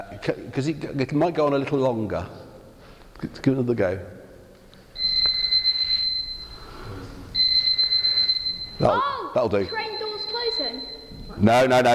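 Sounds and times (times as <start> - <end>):
speech: 0.0 - 2.4, 3.2 - 4.2, 8.8 - 9.9, 11.4 - 11.9
alarm clock ringing: 5.0 - 11.4.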